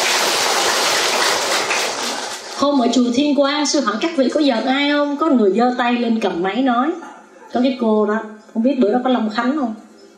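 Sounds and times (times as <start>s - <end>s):
audience applauding: 0.0s - 2.4s
speech: 2.6s - 9.8s.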